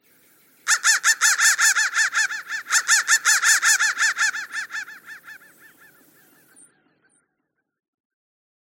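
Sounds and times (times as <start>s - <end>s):
crow cawing: 0.7s - 6.5s.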